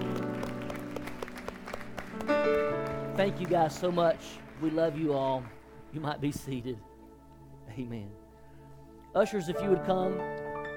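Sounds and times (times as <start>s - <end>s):
church congregation clapping to welcome guests: 0.0s - 6.6s
speech: 2.3s - 6.9s, 7.7s - 8.2s, 9.2s - 10.4s.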